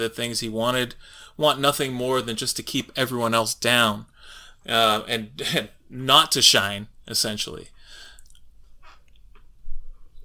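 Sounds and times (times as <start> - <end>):
speech: 0.0 - 7.8
person drinking a sip of water: 8.1 - 9.4.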